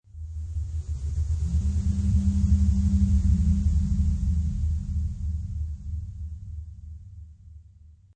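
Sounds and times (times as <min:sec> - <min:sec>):
ectoplasm ghostly presence sound effect: 0:00.5 - 0:06.9.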